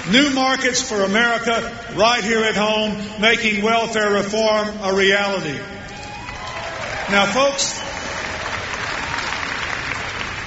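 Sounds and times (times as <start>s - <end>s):
large crowd applauding a political speech: 0.0s - 0.7s, 5.9s - 10.4s
speech: 0.1s - 5.8s, 7.1s - 7.9s.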